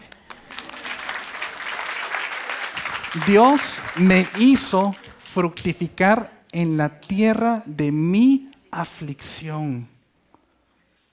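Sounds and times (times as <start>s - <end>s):
audience applause: 0.0s - 5.3s
speech: 3.1s - 9.9s.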